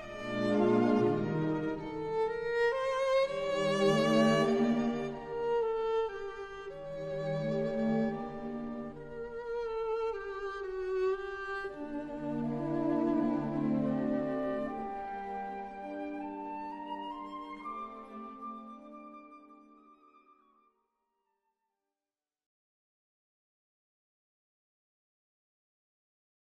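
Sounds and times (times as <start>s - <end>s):
moving violin music: 0.0s - 20.7s.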